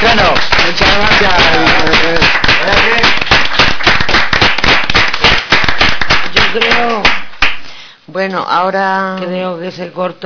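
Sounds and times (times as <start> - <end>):
applause: 0.0 - 7.7
speech: 8.3 - 10.2.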